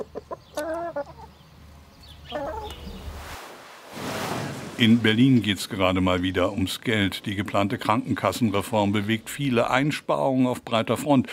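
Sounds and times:
chickens clucking: 0.0s - 3.1s
speech: 4.8s - 11.3s.

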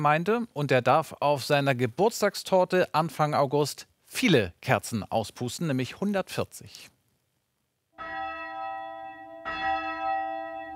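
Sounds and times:
speech: 0.0s - 6.9s
church bell tower ringing: 8.0s - 10.7s.

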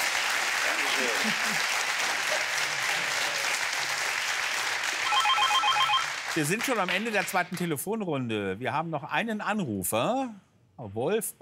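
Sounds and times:
applause: 0.0s - 7.7s
speech: 1.0s - 2.7s, 6.4s - 11.4s.

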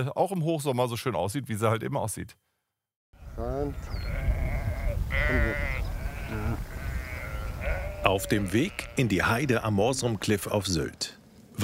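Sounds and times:
speech: 0.0s - 2.5s, 3.4s - 4.2s, 5.1s - 6.7s, 8.1s - 11.6s
flock of sheep bleating on heathland at Morsum Cliff on Sylt: 3.6s - 9.6s.

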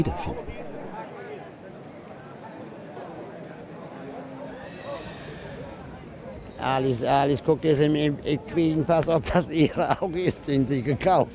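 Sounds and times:
speech: 0.0s - 0.5s, 6.6s - 11.3s
indistinct murmuring voices: 0.0s - 10.4s
horse whinnying: 4.4s - 6.6s.

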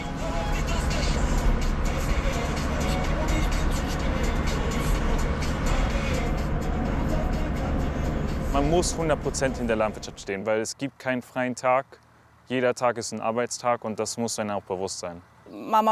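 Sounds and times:
tractor engine while driving: 0.0s - 10.4s
speech: 8.6s - 15.9s.

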